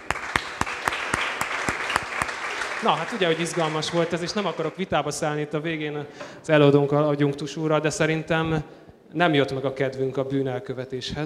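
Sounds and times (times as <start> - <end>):
sharp rhythmic claps: 0.0 - 5.0
speech: 2.8 - 11.2.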